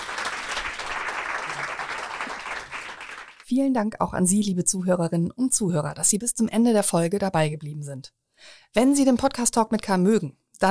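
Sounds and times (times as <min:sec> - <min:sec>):
crowd applauding: 0:00.0 - 0:03.4
speech: 0:03.5 - 0:10.6.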